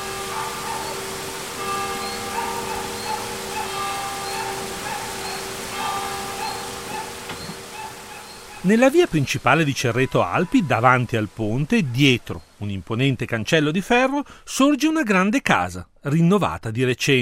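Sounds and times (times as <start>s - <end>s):
church bells ringing: 0.0s - 8.6s
flowing canal water: 0.0s - 14.1s
speech: 8.6s - 17.2s.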